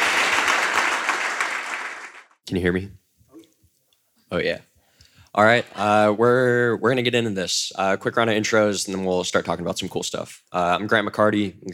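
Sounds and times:
audience applause: 0.0s - 2.4s
speech: 2.5s - 3.0s, 4.3s - 4.7s, 5.3s - 11.7s.

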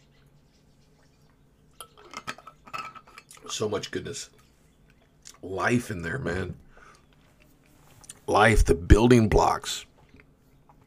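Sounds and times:
glass clinking: 1.8s - 3.4s
speech: 3.5s - 4.4s, 5.4s - 6.6s, 8.3s - 9.9s.

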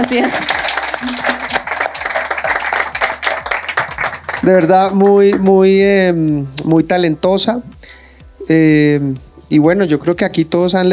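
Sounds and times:
speech: 0.0s - 1.4s, 4.4s - 7.7s, 8.5s - 10.9s
applause: 0.0s - 5.6s.

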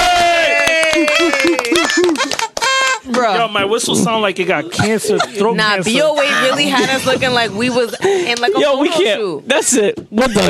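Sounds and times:
applause: 0.0s - 3.2s
laughter: 0.6s - 3.4s, 4.5s - 10.4s
speech: 3.2s - 10.4s.

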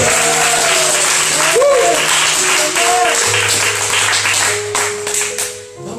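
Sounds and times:
audience shouting: 0.0s - 3.4s
audience applauding: 0.0s - 5.6s.

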